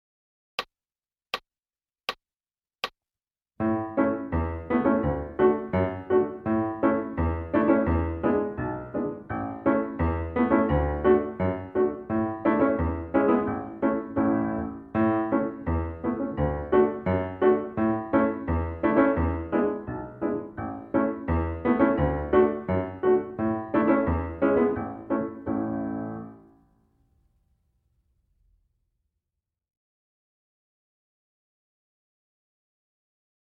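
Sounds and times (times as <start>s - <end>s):
piano: 3.6s - 27.2s.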